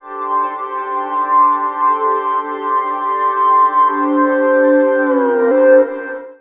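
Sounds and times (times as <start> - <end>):
synth pads in G sharp: 0.0 - 6.3.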